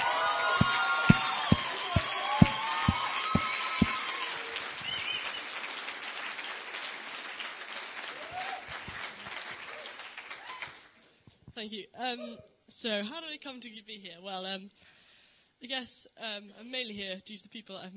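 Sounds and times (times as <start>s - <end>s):
high whistling cheers: 0.0s - 5.6s, 8.1s - 8.7s
audience applause: 0.0s - 11.0s
speech: 0.6s - 0.8s, 11.7s - 15.0s, 15.6s - 17.9s.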